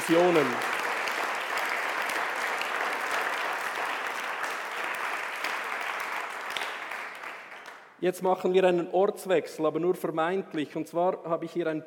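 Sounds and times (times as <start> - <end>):
audience applause: 0.0 - 7.9
speech: 0.1 - 0.7, 8.0 - 11.8.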